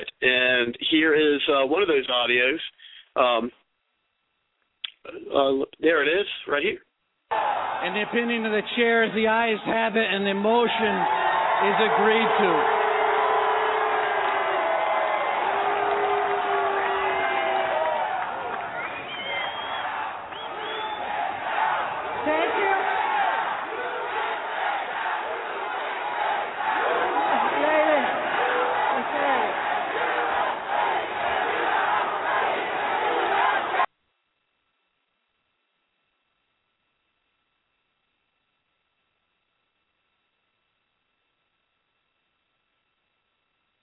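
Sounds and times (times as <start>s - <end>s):
speech: 0.2s - 3.6s, 5.0s - 12.8s
legislative chamber crowd shouting and chanting: 7.3s - 33.9s.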